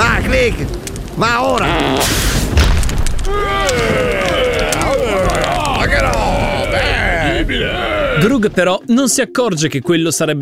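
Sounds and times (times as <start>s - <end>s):
thunderclap from a lightning strike: 0.0s - 8.7s
speech: 0.4s - 2.3s, 7.5s - 10.4s
wavering vocal cries: 3.3s - 8.4s.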